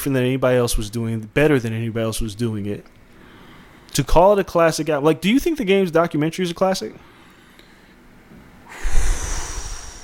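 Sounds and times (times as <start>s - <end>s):
speech: 0.0s - 3.0s, 3.9s - 7.1s
person breathing hard in a heavy exhale: 8.6s - 10.0s.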